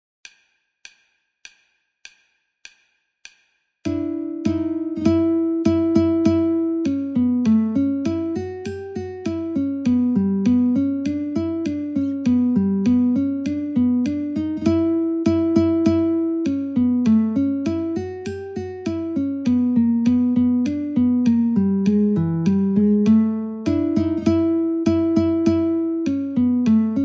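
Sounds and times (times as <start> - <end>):
guitar metronome at 50: 3.9 - 27.0.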